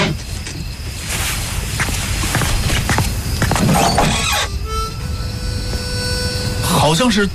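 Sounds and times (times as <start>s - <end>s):
rustling: 0.1s - 3.7s
footsteps: 0.2s - 4.3s
harmonica played on the steps outside a dormitory building: 4.1s - 7.1s.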